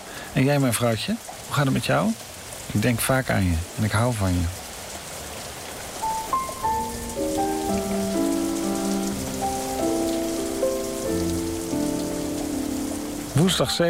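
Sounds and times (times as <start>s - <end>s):
rain falling: 0.0s - 13.8s
speech: 0.4s - 4.6s, 13.4s - 13.8s.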